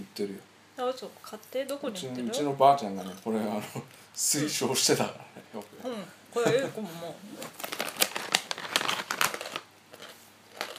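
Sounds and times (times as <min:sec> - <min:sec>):
speech: 0:00.2 - 0:07.7
crunching crispy seaweed snack: 0:07.5 - 0:10.7.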